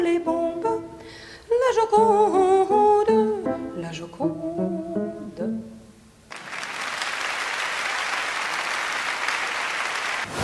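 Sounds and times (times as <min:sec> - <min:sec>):
speech: 0:00.1 - 0:00.6, 0:01.7 - 0:02.8, 0:03.8 - 0:05.7
studio audience applauding: 0:06.3 - 0:10.3.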